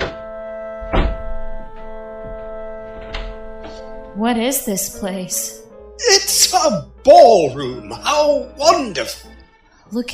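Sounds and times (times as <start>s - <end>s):
door being kicked open: 0.0s - 1.9s
speech: 4.2s - 9.3s, 9.9s - 10.1s.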